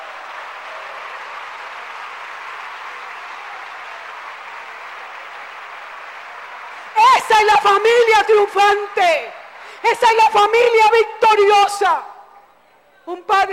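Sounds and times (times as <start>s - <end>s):
audience applauding: 0.0s - 10.8s
speech: 7.3s - 12.1s, 13.1s - 13.5s.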